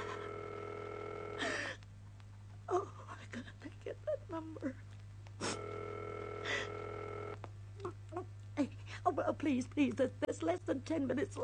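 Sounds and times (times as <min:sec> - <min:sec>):
telephone ringing tone as the operator rings a number: 0:00.0 - 0:01.5, 0:05.4 - 0:07.4
low hum: 0:00.0 - 0:08.6
speech: 0:04.4 - 0:04.9, 0:09.2 - 0:11.4.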